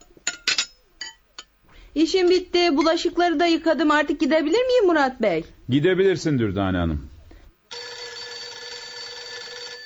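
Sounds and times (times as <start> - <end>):
speech: 2.0 - 7.1
telephone ringing: 7.7 - 9.8.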